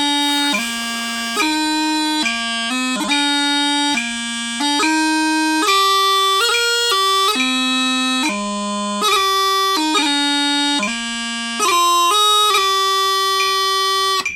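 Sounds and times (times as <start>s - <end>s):
bagpipe chanter playing: 0.0s - 14.3s.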